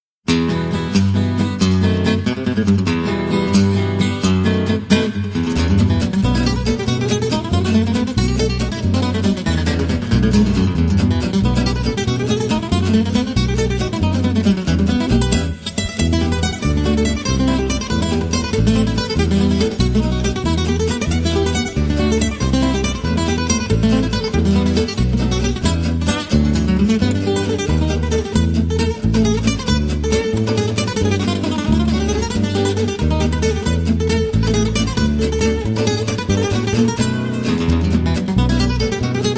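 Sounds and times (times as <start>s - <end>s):
jazz manouche: 0.3s - 39.3s.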